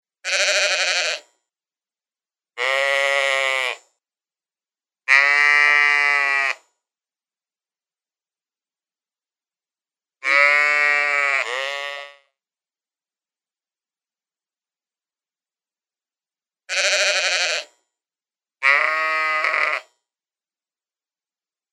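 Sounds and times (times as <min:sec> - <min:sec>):
sheep giving wavering bleats: 0:00.2 - 0:01.3, 0:02.6 - 0:03.8, 0:05.1 - 0:06.6, 0:10.2 - 0:12.2, 0:16.7 - 0:17.7, 0:18.6 - 0:19.9.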